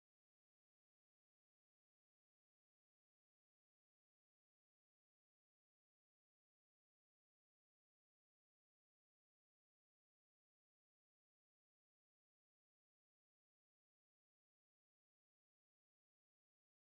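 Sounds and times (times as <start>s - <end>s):
wobbly ambient sound effect: 0.0s - 16.9s.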